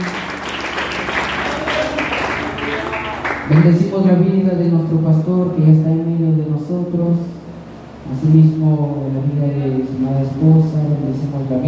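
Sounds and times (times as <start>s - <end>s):
audience clapping hands: 0.0s - 3.8s
speech: 3.5s - 7.4s, 8.1s - 11.6s.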